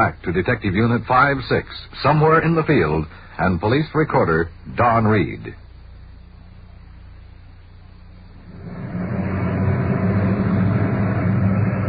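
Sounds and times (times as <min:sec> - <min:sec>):
speech: 0:00.0 - 0:05.6
car engine arriving and idling: 0:07.2 - 0:11.8.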